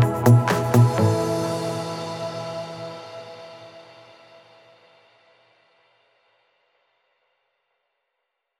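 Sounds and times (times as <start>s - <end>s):
summer dance music: 0.0s - 3.5s.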